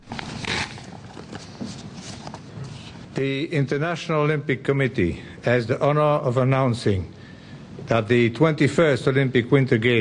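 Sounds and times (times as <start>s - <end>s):
paper rustling: 0.0s - 3.0s
envelope tearing open to announce the 2010 Winter Olympic Games host city: 0.1s - 1.2s
speech: 3.2s - 7.2s, 7.9s - 9.9s.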